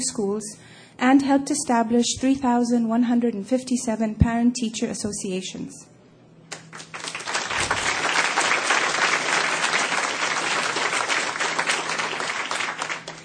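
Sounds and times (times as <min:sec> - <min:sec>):
speech: 0:00.0 - 0:06.0
audience applause: 0:06.6 - 0:13.2.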